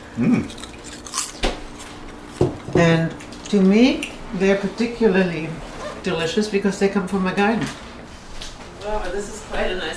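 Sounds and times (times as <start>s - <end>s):
speech: 0.2s - 0.7s, 2.8s - 7.8s, 8.8s - 9.9s
homegrown kale chips crunching while chewed: 0.3s - 3.6s.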